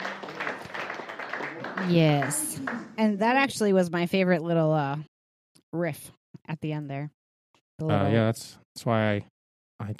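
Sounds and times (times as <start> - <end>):
crowd applauding: 0.0 - 3.0
speech: 1.8 - 5.1, 5.7 - 7.2, 7.8 - 9.9.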